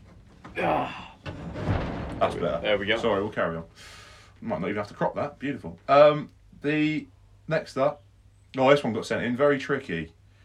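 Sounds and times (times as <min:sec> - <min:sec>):
faint noise: 0:00.0 - 0:10.4
speech: 0:00.6 - 0:01.1, 0:02.2 - 0:10.2
door shutting with soft thud: 0:01.2 - 0:02.7
door swinging with rushing scrape: 0:01.2 - 0:03.3.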